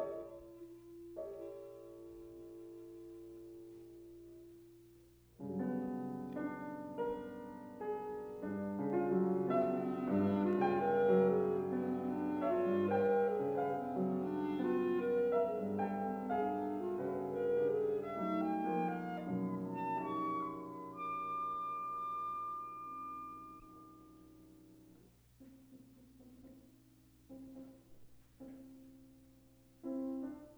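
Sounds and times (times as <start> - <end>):
piano: 0.0 - 30.5
clarinet: 5.5 - 24.8.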